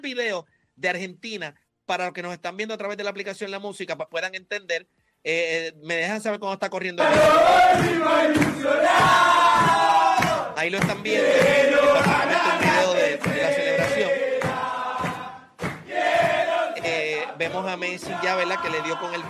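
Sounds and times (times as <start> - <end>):
speech: 0.0 - 10.0, 10.6 - 14.2, 17.4 - 19.2
rhythmic clapping or stomping: 7.0 - 19.2
team of men singing and chanting in a victory celebration: 7.0 - 19.2.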